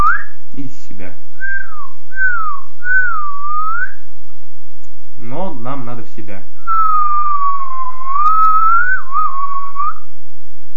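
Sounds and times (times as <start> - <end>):
whistling while inhaling through pursed lips: 0.0 - 0.4, 1.4 - 4.0, 6.7 - 10.1
speech: 0.6 - 3.4, 5.2 - 8.4.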